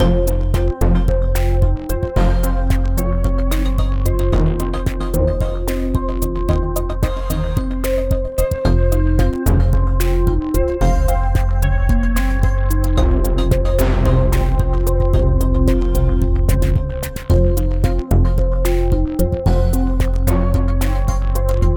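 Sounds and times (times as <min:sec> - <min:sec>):
tense music: 0:00.0 - 0:21.7.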